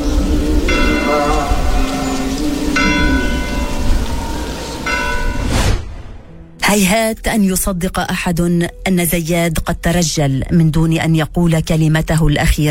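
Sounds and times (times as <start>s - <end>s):
church bells ringing: 0.0s - 5.5s
person reciting Quran verses: 0.9s - 3.4s
speech: 6.7s - 12.7s.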